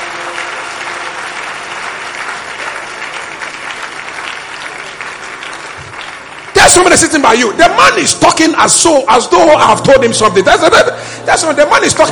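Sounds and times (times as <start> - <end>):
audience clapping in praise: 0.0 - 8.9
speech: 6.7 - 12.1.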